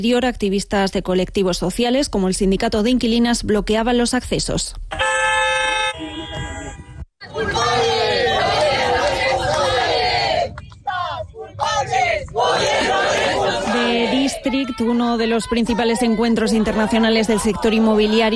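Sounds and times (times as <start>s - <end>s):
speech: 0.0s - 5.0s, 14.4s - 18.3s
horn-like tone: 4.9s - 7.1s
protesters shouting and chanting during an inauguration: 7.2s - 18.3s.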